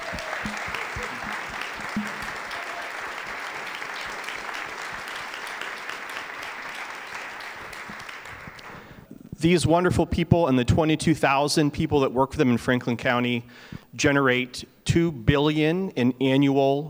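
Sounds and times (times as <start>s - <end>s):
crowd applauding for nonprofit workers: 0.0s - 9.0s
speech: 9.4s - 16.8s.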